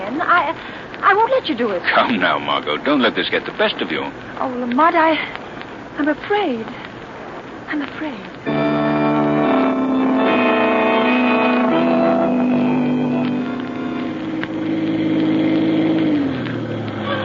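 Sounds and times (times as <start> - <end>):
speech: 0.3 - 5.4, 6.0 - 6.8, 7.7 - 8.6
car engine droning while driving: 8.4 - 17.2.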